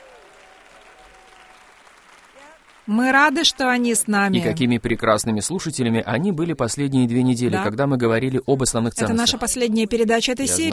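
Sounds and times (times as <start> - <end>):
audience applause at a church ministry gathering: 0.0 - 3.6
speech: 2.9 - 10.7.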